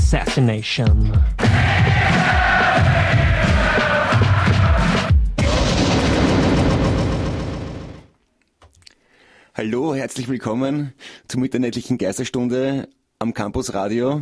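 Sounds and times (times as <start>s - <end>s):
speech: 0.1s - 1.8s, 9.6s - 14.2s
crowd-like roar: 1.4s - 7.9s
explosion effect from a radio jingle: 5.4s - 8.1s.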